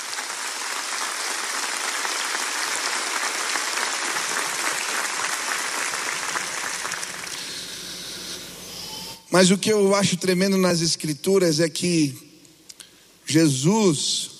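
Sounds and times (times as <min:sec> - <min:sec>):
audience applauding: 0:00.0 - 0:07.9
speech: 0:09.3 - 0:12.3, 0:13.3 - 0:14.3.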